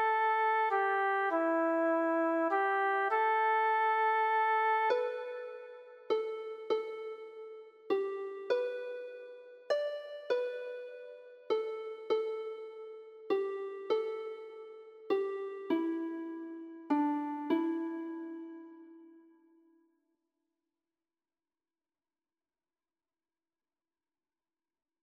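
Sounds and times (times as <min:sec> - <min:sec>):
lyre playing: 0:00.0 - 0:19.3.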